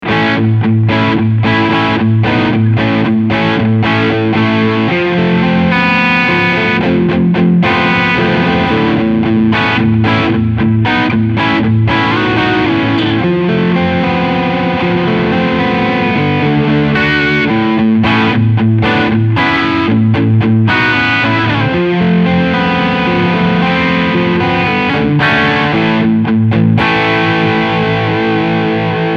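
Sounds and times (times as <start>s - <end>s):
overdriven guitar with EQ at 12 o'clock: 0.0s - 29.1s.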